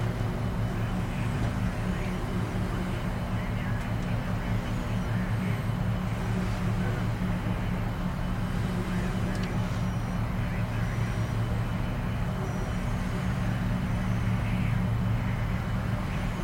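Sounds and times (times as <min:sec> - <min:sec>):
shuttle cabin engine drone: 0:00.0 - 0:16.4.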